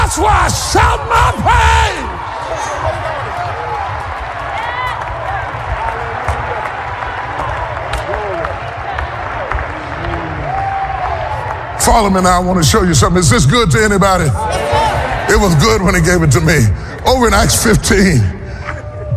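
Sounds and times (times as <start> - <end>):
speech: 0.1 - 1.8, 11.9 - 18.4
audience clapping hands: 3.1 - 11.8.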